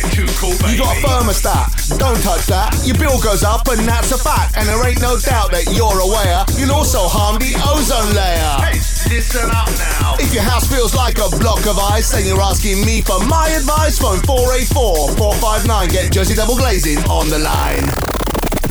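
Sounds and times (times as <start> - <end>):
person rapping: 0.0 - 18.2.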